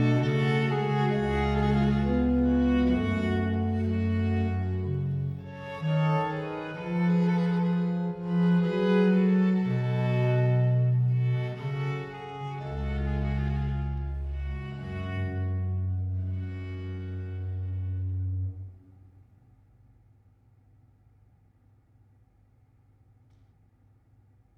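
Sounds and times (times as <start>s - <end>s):
slow sonata movement in G minor: 0.0s - 18.9s.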